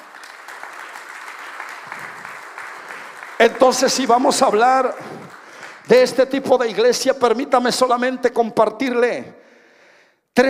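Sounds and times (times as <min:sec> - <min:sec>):
crowd clapping: 0:00.0 - 0:07.3
speech: 0:03.4 - 0:05.2, 0:05.9 - 0:09.4.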